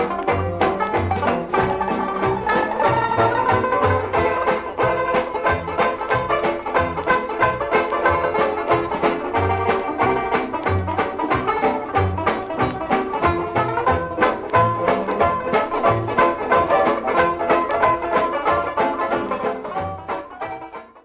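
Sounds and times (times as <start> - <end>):
orchestra ukulele: 0.0 - 21.0.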